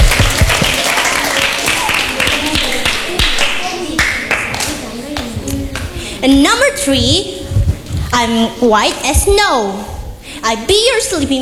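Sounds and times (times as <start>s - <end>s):
applause from a classroom audience: 0.0s - 6.0s
speech: 6.2s - 7.4s, 8.1s - 11.4s.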